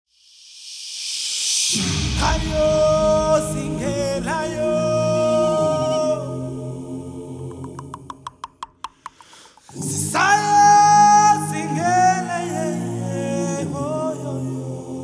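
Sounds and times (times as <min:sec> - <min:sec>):
youth choir singing: 0:02.3 - 0:08.3, 0:09.6 - 0:15.0.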